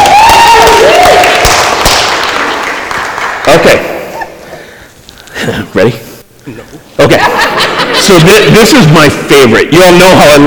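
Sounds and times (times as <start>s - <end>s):
audience cheering and applauding: 0.0s - 3.7s
speech: 5.5s - 10.4s
laughter: 7.0s - 8.6s.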